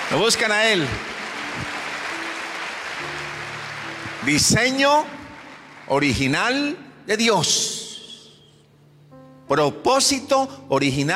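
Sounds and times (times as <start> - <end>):
audience applause: 0.0 - 6.5
speech: 0.1 - 1.7, 4.2 - 5.2, 5.9 - 7.7, 9.5 - 11.1.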